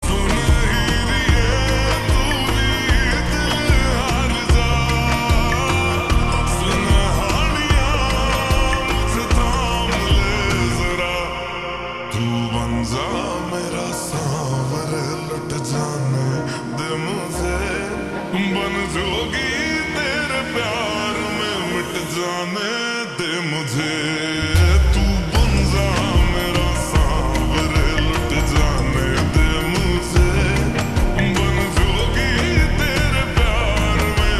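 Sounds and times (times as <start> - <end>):
slowed ringtone with reverb: 0.0 - 23.8, 24.4 - 34.3.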